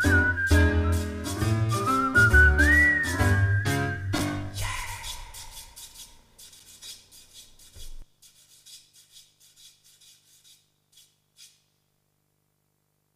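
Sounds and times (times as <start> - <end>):
cheerful whistling: 0.0 - 5.2.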